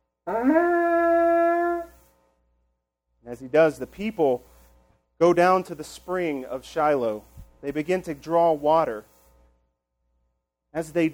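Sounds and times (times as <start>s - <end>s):
horn trumpet blown by a priest: 0.3s - 1.9s
speech: 3.3s - 4.5s, 5.2s - 9.1s, 10.8s - 11.1s.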